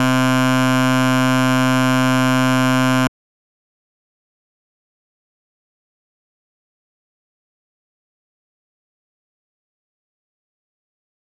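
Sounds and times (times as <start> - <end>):
bass note C4: 0.0 - 3.1.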